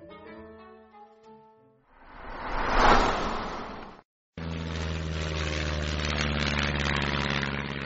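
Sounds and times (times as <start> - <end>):
rising whoosh of noise: 2.0 - 4.0
old airplane engines roaring: 2.2 - 7.8.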